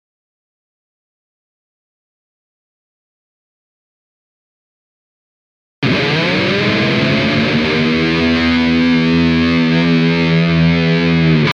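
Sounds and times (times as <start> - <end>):
guitar intro whammy dip: 5.8 - 11.5.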